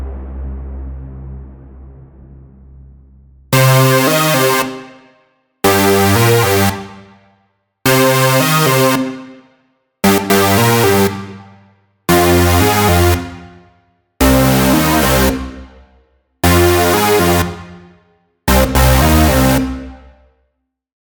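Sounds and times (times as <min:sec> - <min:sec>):
bass and lead synths: 0:03.6 - 0:07.2, 0:07.9 - 0:20.2.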